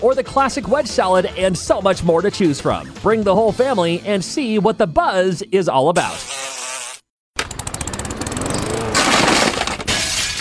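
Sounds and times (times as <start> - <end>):
speech: 0.0 - 6.3
window glass shattering: 8.9 - 10.3.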